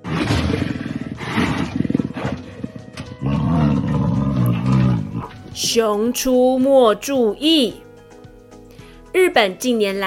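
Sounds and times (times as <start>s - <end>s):
robot wolf roaring with electronic growls: 0.0s - 5.3s
speech: 5.7s - 7.8s, 9.2s - 10.0s.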